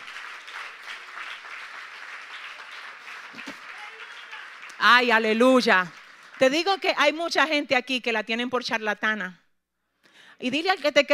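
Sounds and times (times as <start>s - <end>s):
audience applause: 0.0s - 6.8s
speech: 4.8s - 9.4s, 10.4s - 11.1s.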